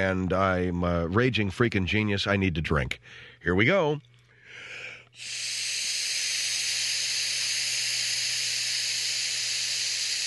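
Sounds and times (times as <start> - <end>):
speech: 0.0 - 5.6
blowing into a breathalyzer: 5.2 - 10.2.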